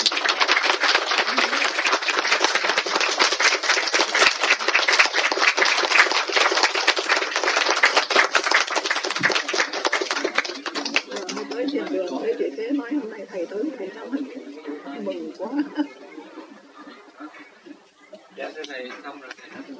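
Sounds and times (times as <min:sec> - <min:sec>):
audience clapping: 0:00.0 - 0:12.3
laughter: 0:00.9 - 0:04.6, 0:13.8 - 0:18.2.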